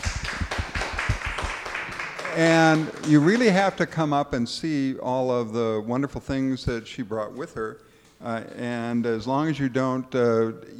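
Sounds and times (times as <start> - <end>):
audience at a talk applauding the speaker: 0.0 - 3.9
speech: 2.4 - 10.7.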